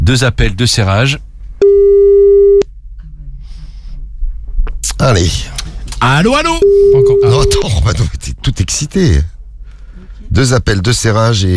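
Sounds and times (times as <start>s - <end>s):
speech: 0.1s - 1.3s, 5.0s - 9.3s, 10.3s - 11.5s
beeping tone: 1.6s - 2.6s, 6.6s - 7.7s.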